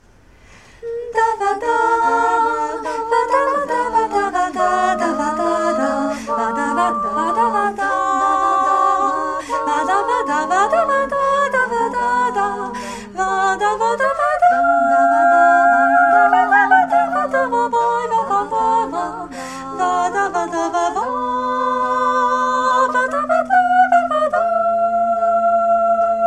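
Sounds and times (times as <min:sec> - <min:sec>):
voices singing a mass: 0:00.8 - 0:26.2.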